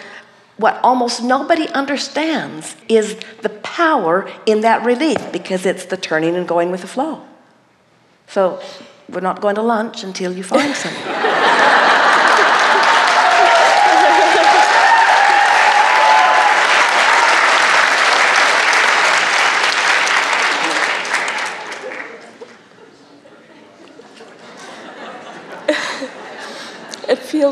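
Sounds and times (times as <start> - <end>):
speech: 0.6 - 7.3, 8.3 - 11.9
laughter: 10.6 - 15.5, 20.4 - 27.1
audience applauding: 11.4 - 22.7.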